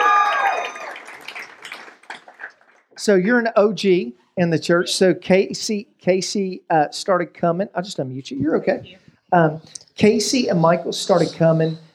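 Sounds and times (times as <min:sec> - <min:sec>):
applause: 0:00.0 - 0:02.9
speech: 0:03.0 - 0:11.9.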